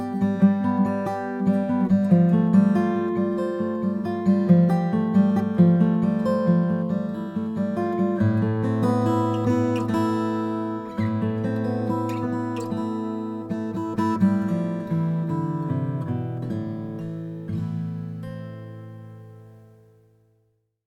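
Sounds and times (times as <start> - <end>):
Santa Cruz OM cocobolo guitar: 0.0 - 20.5.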